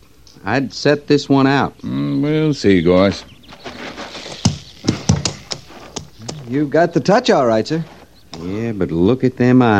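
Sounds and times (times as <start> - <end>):
speech: 0.4 - 3.3, 6.5 - 9.7
horse stamping with heavy hoof thuds: 3.4 - 8.4.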